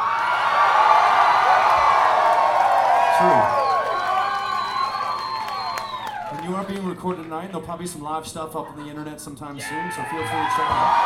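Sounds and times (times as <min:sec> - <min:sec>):
audience cheering: 0:00.0 - 0:07.3, 0:09.6 - 0:11.0
speech: 0:06.7 - 0:11.0.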